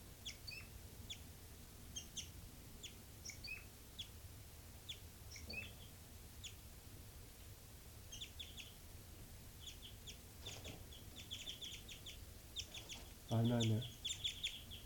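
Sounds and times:
bird flight calls: 0:00.2 - 0:01.2, 0:01.9 - 0:04.1, 0:04.9 - 0:06.6, 0:08.1 - 0:08.8, 0:09.6 - 0:14.8
speech: 0:13.3 - 0:13.9.

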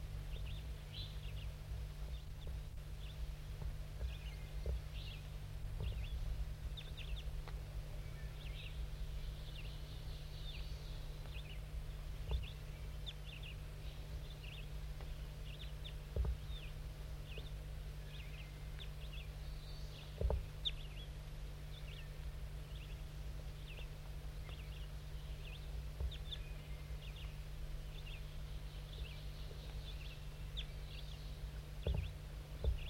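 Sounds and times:
bird 5-3 calling softly to a wild bird in the trees: 0:00.0 - 0:32.8.

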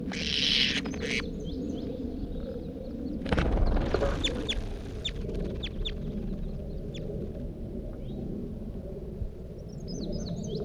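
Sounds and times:
fainter high chirps: 0:00.1 - 0:01.3, 0:03.2 - 0:07.5
bird giving short harsh calls: 0:00.1 - 0:01.9, 0:03.2 - 0:07.5
steady low rumble of noise: 0:00.1 - 0:10.5.

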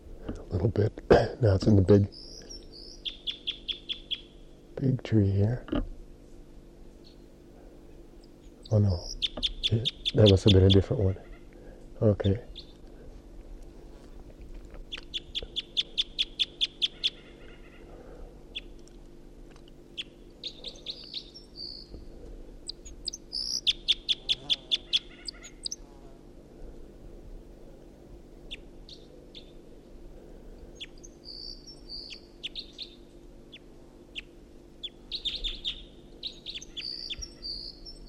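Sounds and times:
speech: 0:00.3 - 0:02.3, 0:04.8 - 0:05.9, 0:08.7 - 0:11.3, 0:12.0 - 0:12.6
two birds singing in trees: 0:01.6 - 0:04.7, 0:07.0 - 0:07.4, 0:08.0 - 0:12.9, 0:14.8 - 0:18.8, 0:19.8 - 0:25.9, 0:28.4 - 0:29.6, 0:30.6 - 0:38.0.

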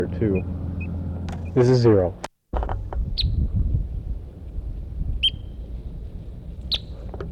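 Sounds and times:
speech: 0:00.0 - 0:00.6, 0:01.5 - 0:02.3
steady low rumble of noise: 0:00.0 - 0:07.3
bird singing bright whistled chirps: 0:03.2 - 0:03.4, 0:05.2 - 0:05.6, 0:06.6 - 0:07.0.

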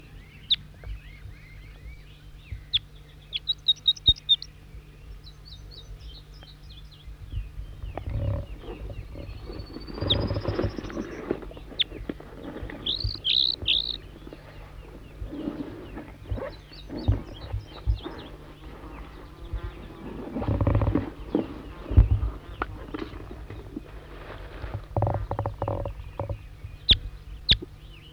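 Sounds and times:
wild bird singing chirping phrases: 0:00.0 - 0:28.1
scattered thumping noises: 0:07.7 - 0:27.8.

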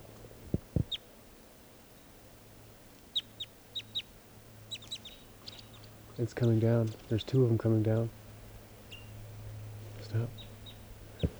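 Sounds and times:
wild bird calling in the trees: 0:03.1 - 0:11.3
speech: 0:06.2 - 0:08.2.

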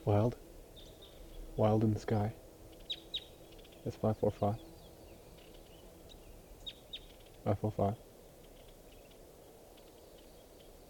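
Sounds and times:
speech: 0:00.0 - 0:00.5, 0:01.6 - 0:02.4, 0:03.8 - 0:04.7, 0:07.4 - 0:08.0
low hiss: 0:00.0 - 0:10.8
wild bird chirps: 0:02.7 - 0:07.5, 0:08.4 - 0:10.8.

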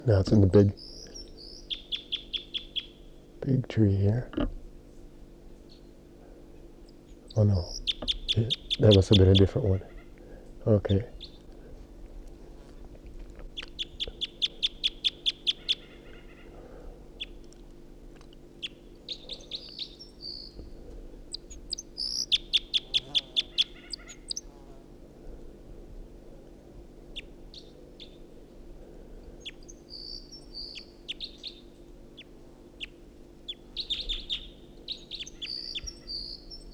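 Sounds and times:
speech: 0:00.0 - 0:01.0, 0:03.4 - 0:04.6, 0:07.4 - 0:09.9, 0:10.6 - 0:11.2
two birds singing: 0:00.0 - 0:11.8, 0:12.4 - 0:24.9, 0:26.5 - 0:36.7.

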